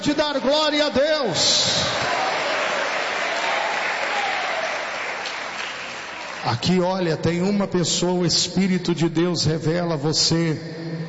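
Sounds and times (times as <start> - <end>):
speech: 0.0 - 2.2, 6.4 - 11.0
audience applauding: 1.8 - 6.5.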